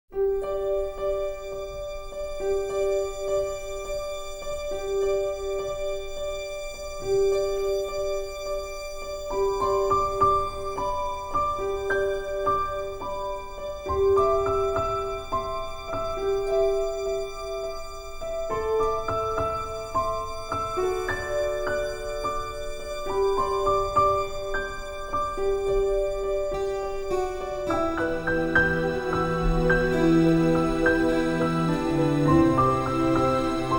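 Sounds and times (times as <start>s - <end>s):
film music: 0.1s - 33.7s.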